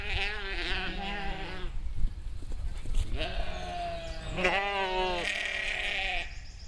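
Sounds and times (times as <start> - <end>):
sheep bleating: 0.0 - 1.8, 3.2 - 6.3.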